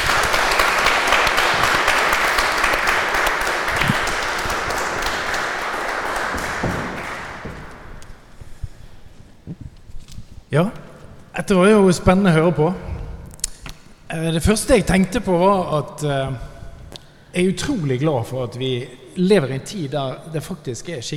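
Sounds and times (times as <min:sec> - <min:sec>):
audience applause: 0:00.0 - 0:08.3
speech: 0:11.4 - 0:12.9, 0:14.2 - 0:16.5, 0:17.3 - 0:21.1.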